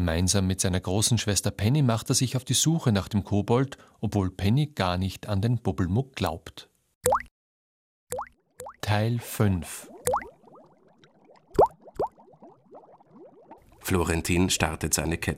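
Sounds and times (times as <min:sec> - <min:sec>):
speech: 0:00.0 - 0:07.3, 0:08.9 - 0:10.2, 0:13.8 - 0:15.3
water bubbling from a tub and fountain: 0:08.1 - 0:15.3.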